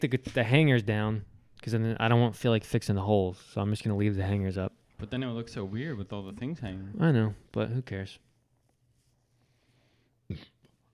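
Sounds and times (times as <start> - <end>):
speech: 0.0 - 8.3, 10.3 - 10.5
held-in burp through the nose: 10.3 - 10.7.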